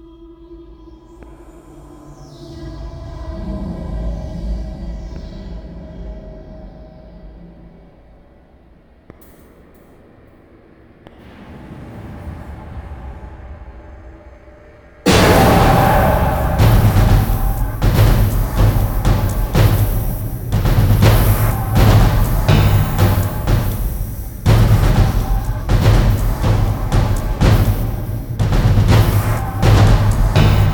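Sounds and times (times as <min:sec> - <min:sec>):
music cue: 0:15.1 - 0:30.7.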